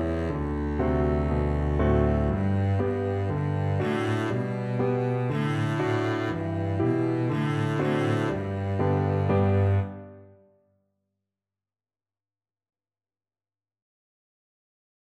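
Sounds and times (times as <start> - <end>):
double bass: 0.0 - 10.0.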